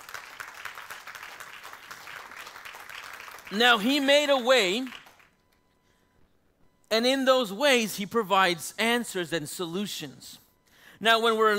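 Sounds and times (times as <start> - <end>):
audience clapping: 0.0 - 5.5
speech: 3.5 - 5.0, 6.9 - 10.4, 11.0 - 11.5.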